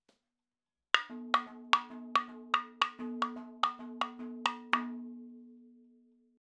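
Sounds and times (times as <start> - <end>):
madalam drum fills: 1.0 - 4.9.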